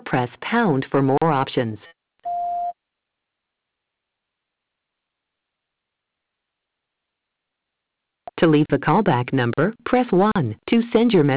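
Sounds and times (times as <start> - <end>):
speech: 0.1 - 1.9, 8.4 - 11.3
voicemail recording tone beep: 2.2 - 2.7.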